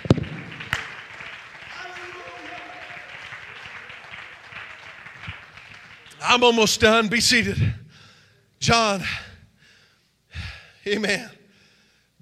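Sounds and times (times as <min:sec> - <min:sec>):
crowd clapping: 0:00.0 - 0:07.0
speech: 0:06.3 - 0:07.8, 0:08.6 - 0:09.3, 0:10.8 - 0:11.4.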